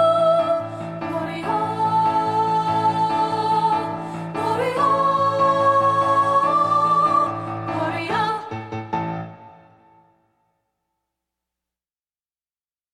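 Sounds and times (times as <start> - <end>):
two-part choral singing: 0.0 - 8.7.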